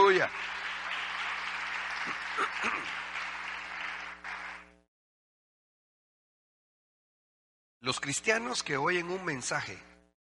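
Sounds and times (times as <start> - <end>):
audience applause: 0.0 - 4.8
speech: 0.2 - 0.6, 7.8 - 9.9.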